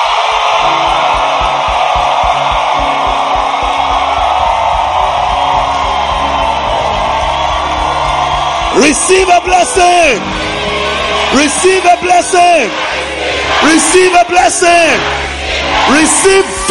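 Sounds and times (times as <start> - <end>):
large crowd clapping: 0.0 - 16.6
speech: 8.8 - 10.7, 11.3 - 13.0, 13.6 - 15.2, 15.9 - 16.6.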